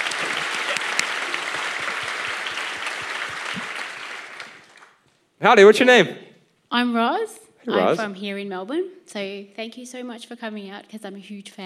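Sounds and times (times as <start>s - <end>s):
audience applause: 0.0s - 6.1s
speech: 5.4s - 11.6s.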